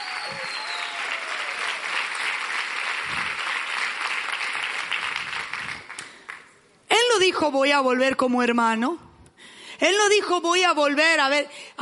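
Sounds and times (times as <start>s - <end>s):
audience applause: 0.0s - 6.4s
speech: 7.4s - 9.0s, 9.8s - 11.8s.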